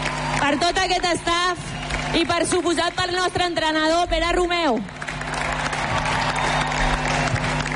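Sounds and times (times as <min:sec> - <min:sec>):
audience applause: 0:00.0 - 0:03.4, 0:04.8 - 0:07.7
speech: 0:00.5 - 0:05.0.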